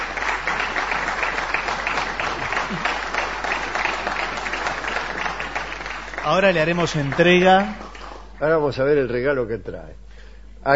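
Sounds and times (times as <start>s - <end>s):
audience applause: 0.0s - 8.6s
speech: 6.3s - 7.8s, 8.4s - 10.0s.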